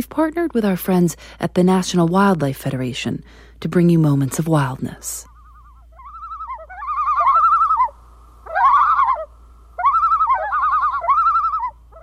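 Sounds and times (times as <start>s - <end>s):
speech: 0.0s - 5.3s
low steady hum: 0.0s - 12.0s
common loon calling: 5.3s - 12.0s.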